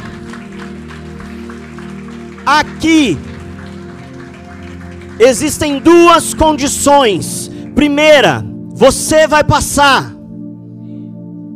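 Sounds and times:
audience applause: 0.0s - 6.8s
speech: 2.5s - 3.3s, 5.2s - 10.2s.

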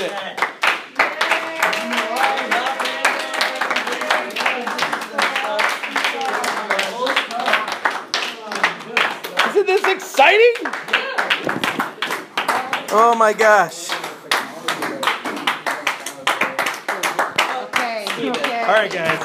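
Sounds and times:
hand clapping: 0.0s - 19.2s
speech: 12.9s - 13.8s, 18.2s - 19.2s.

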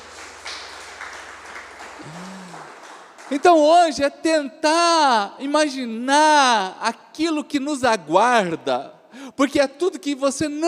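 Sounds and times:
crowd applauding: 0.0s - 3.6s
speech: 3.3s - 10.6s.

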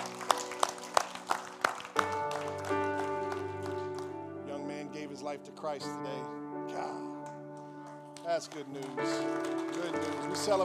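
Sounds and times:
audience hand clapping: 0.0s - 4.6s, 7.2s - 10.6s
speech: 5.3s - 7.0s, 8.3s - 10.6s.

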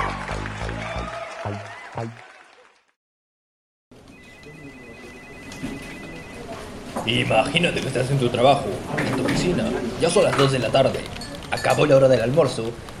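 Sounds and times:
crowd applause sound effect: 0.0s - 3.0s
speech: 2.0s - 2.2s, 7.1s - 12.9s
thin high tone: 4.1s - 6.7s.

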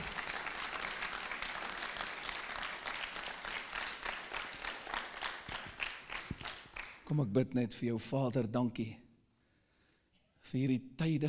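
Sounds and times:
audience clapping: 0.0s - 7.2s
speech: 7.1s - 9.0s, 10.5s - 11.2s.

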